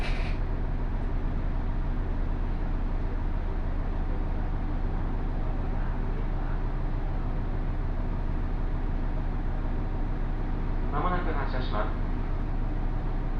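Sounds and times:
local train on the Takayama Main Line running between Jōro and Shimo-Yui: 0:00.0 - 0:13.3.

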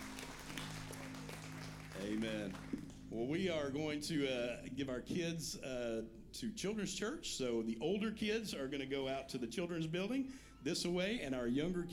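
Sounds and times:
audience clapping: 0:00.0 - 0:03.1
speech: 0:02.0 - 0:11.9.

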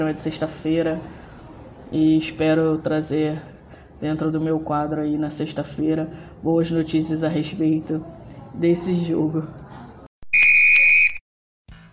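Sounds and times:
speech: 0:00.0 - 0:01.2, 0:01.9 - 0:09.6
final whistle sound effect: 0:10.3 - 0:11.2.

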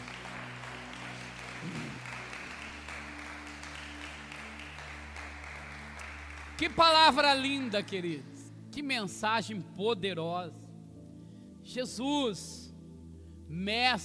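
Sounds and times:
church audience applauding: 0:00.0 - 0:08.2
speech: 0:06.6 - 0:10.6, 0:11.7 - 0:12.6, 0:13.5 - 0:14.0.

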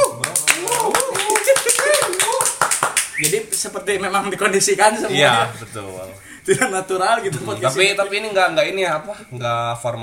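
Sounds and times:
laughter: 0:00.0 - 0:02.5, 0:06.4 - 0:06.9
hand clapping: 0:00.0 - 0:03.8
speech: 0:03.2 - 0:10.0.

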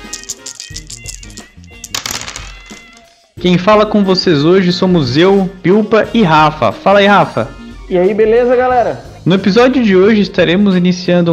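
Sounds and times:
dice rattling: 0:00.0 - 0:03.1
low music: 0:00.0 - 0:11.3
speech: 0:03.4 - 0:11.3.

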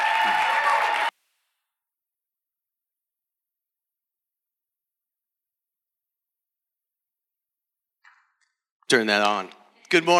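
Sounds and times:
audience applause: 0:00.0 - 0:01.1
speech: 0:08.9 - 0:10.1.

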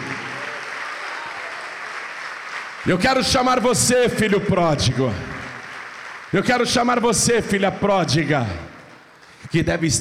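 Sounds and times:
audience applause: 0:00.0 - 0:07.3
speech: 0:02.8 - 0:05.4, 0:06.3 - 0:08.7, 0:09.5 - 0:09.9.

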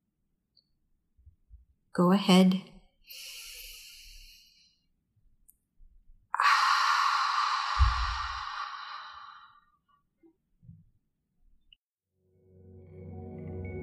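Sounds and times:
speech: 0:02.0 - 0:03.2
breathy exhales through the mouth like fogging a mirror: 0:03.1 - 0:04.8, 0:06.4 - 0:09.7.

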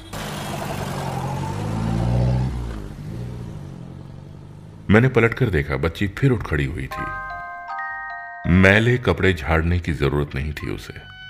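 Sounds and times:
taxi engine revving as it pulls away: 0:00.0 - 0:05.9
speech: 0:04.9 - 0:07.2, 0:08.4 - 0:11.1.

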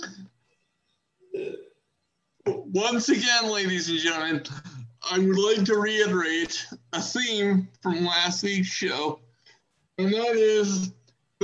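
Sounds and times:
person clearing throat: 0:01.4 - 0:01.6
speech: 0:02.7 - 0:09.2, 0:10.0 - 0:11.4.

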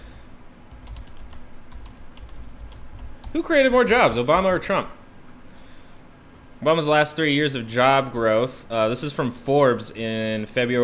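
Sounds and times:
typing a question into Google on a computer keyboard: 0:00.7 - 0:04.6
speech: 0:03.3 - 0:05.0, 0:06.6 - 0:10.8.

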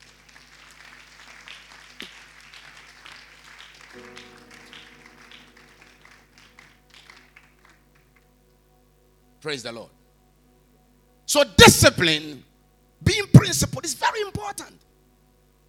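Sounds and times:
audience clapping: 0:00.0 - 0:08.4
speech: 0:04.0 - 0:04.5, 0:09.4 - 0:10.0, 0:11.3 - 0:14.9.

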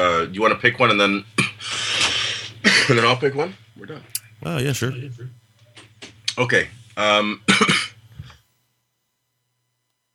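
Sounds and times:
speech: 0:00.2 - 0:01.8, 0:02.9 - 0:05.4, 0:06.4 - 0:07.9
coughing: 0:07.5 - 0:08.0.

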